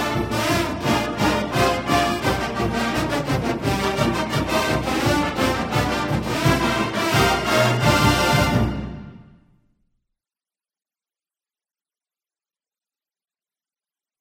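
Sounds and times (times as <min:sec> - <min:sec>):
marching band playing a pregame touchdown piece: 0:00.0 - 0:09.4.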